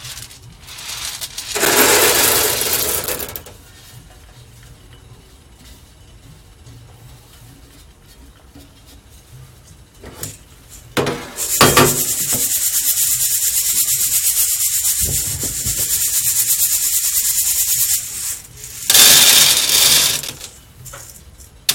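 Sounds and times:
Mocha blend coffee beans being roasted: 0:00.0 - 0:04.6, 0:09.3 - 0:20.9.

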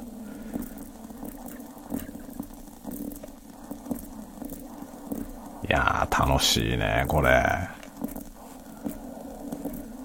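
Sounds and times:
water boiling in a siphon coffee maker: 0:00.0 - 0:10.0
speech: 0:05.7 - 0:07.8.

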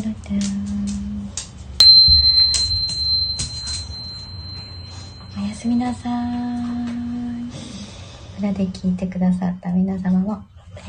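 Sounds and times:
speech: 0:00.1 - 0:00.7, 0:05.6 - 0:06.9, 0:08.4 - 0:10.8
singing bowl ringing: 0:01.8 - 0:05.6.

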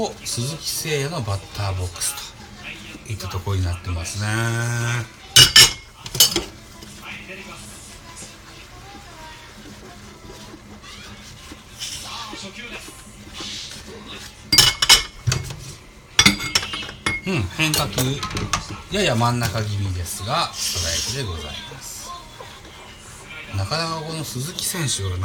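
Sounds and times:
speech: 0:00.0 - 0:02.3, 0:03.1 - 0:05.5, 0:17.3 - 0:21.8, 0:23.6 - 0:25.2
cutlery and plates clinking while washing dishes: 0:05.3 - 0:06.5, 0:14.5 - 0:19.6.

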